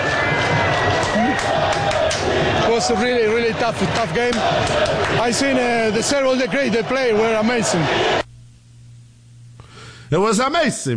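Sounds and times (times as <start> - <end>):
stadium crowd in Seattle cheering for manager Mauricio Pochettino: 0.0 - 8.3
speech: 2.8 - 8.2, 10.1 - 10.9.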